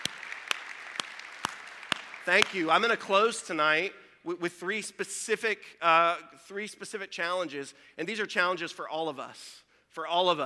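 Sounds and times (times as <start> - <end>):
audience applause: 0.0 - 3.1
speech: 2.3 - 10.4.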